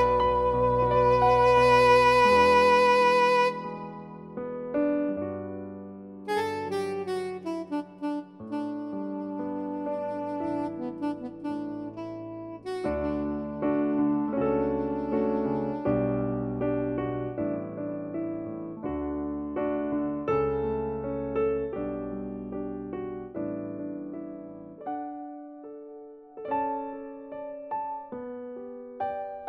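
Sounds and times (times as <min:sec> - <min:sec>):
jazz saxophone: 0:00.0 - 0:04.4, 0:06.3 - 0:16.4
jazz piano: 0:00.0 - 0:29.4.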